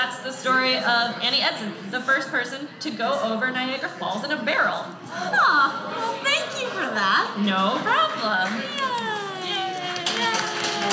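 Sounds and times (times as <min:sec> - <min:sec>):
speech: 0:00.2 - 0:09.3
applause: 0:08.4 - 0:10.9.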